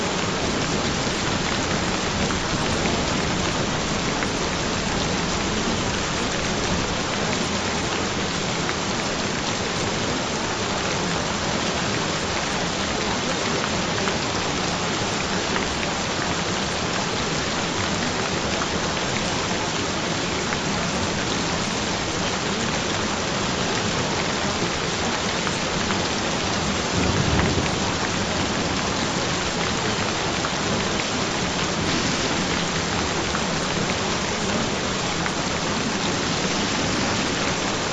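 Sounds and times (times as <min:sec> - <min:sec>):
gentle rain: 0:00.0 - 0:37.9.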